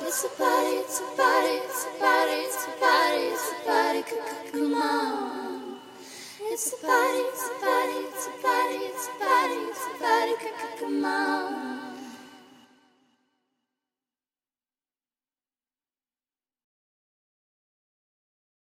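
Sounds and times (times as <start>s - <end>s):
a cappella singing: 0.0s - 13.1s.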